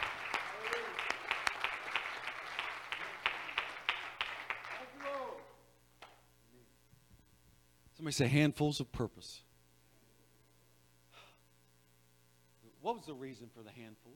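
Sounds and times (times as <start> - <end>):
audience clapping hands: 0.0 - 6.2
speech: 8.0 - 9.5, 13.0 - 14.1.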